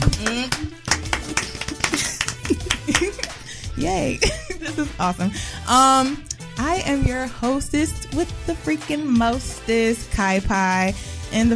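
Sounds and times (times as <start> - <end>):
clapping: 0.0 - 3.4
laughter: 1.5 - 5.3
speech: 3.8 - 11.5.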